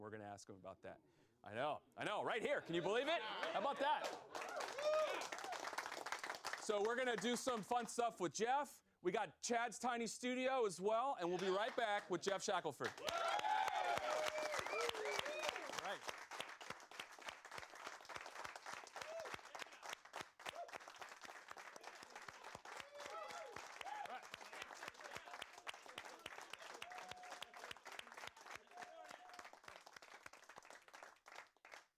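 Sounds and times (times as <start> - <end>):
speech: 0.0 - 5.3, 6.7 - 13.4
applause: 3.3 - 8.0, 11.3 - 31.9
people whooping: 4.3 - 5.7, 13.0 - 16.0, 19.0 - 19.6, 22.7 - 27.8.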